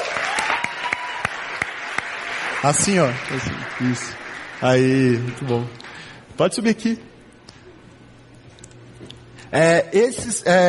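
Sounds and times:
audience applause: 0:00.0 - 0:06.1
speech: 0:02.6 - 0:07.1, 0:09.5 - 0:10.6.

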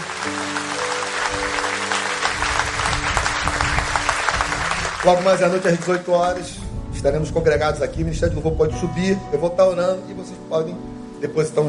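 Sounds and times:
audience applauding loudly: 0:00.0 - 0:06.6
speech: 0:05.0 - 0:11.6.

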